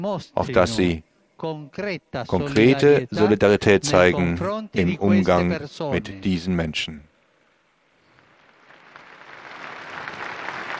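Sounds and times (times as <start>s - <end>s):
speech: 0.0s - 7.1s
audience applause after a speech by the Pope: 8.4s - 10.7s.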